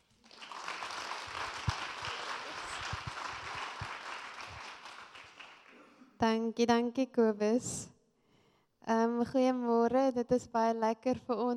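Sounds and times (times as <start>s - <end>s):
church congregation applauding to welcome a woman speaker: 0.0s - 6.0s
speech: 6.2s - 7.9s, 9.2s - 11.5s.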